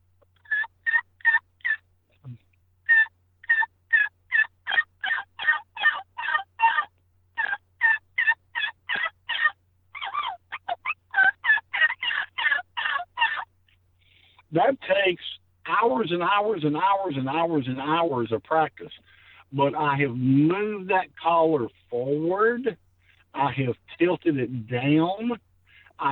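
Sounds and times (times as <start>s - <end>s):
rubber diaphragm turkey call producing raspy yelps: 0.4s - 14.4s
speech: 14.6s - 22.8s, 23.4s - 25.4s.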